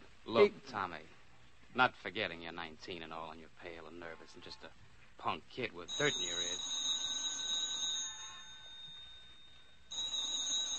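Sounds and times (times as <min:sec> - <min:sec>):
speech: 0:00.3 - 0:01.2, 0:01.8 - 0:06.8
telephone ringing with an electric bell: 0:05.9 - 0:10.7.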